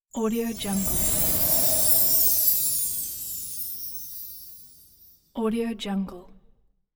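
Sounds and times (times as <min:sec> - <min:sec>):
fairy dust sparkle sound: 0:00.2 - 0:05.4.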